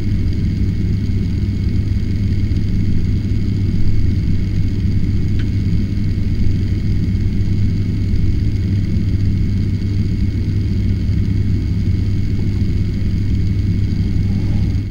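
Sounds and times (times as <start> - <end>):
large extractor fan: 0.0 - 14.8.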